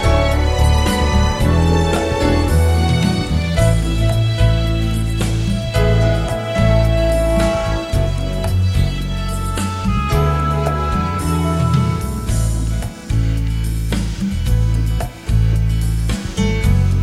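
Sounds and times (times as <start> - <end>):
Holy Week cantata playback backing track: 0.0 - 17.0.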